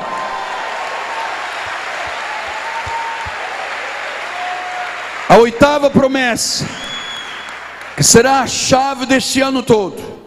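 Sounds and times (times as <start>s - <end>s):
applause: 0.0s - 8.3s
speech: 5.4s - 6.8s, 8.0s - 10.1s.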